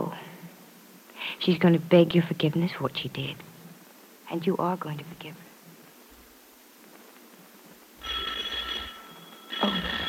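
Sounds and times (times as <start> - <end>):
speech: 1.4 - 3.5, 4.3 - 5.5
doorbell ringing: 8.0 - 10.0.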